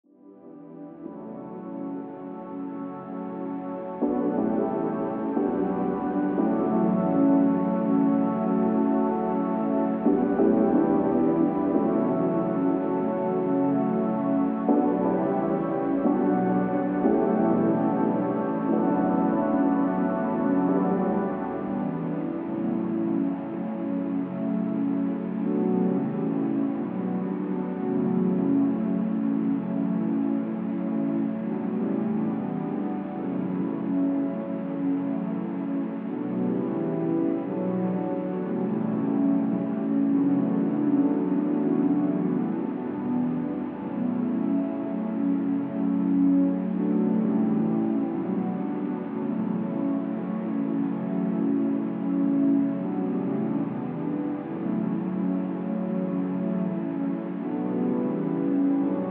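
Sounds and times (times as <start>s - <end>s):
chill synth pads: 0.1s - 59.1s.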